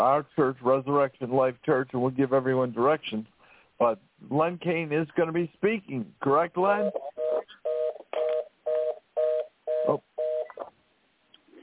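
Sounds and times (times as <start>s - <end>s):
speech: 0.0s - 7.2s, 9.9s - 10.1s
telephone tone: 6.8s - 10.7s.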